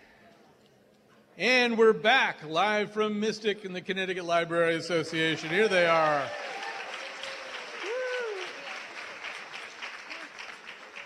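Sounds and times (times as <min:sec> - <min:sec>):
speech: 0:01.4 - 0:06.5
audience applause: 0:05.3 - 0:11.0.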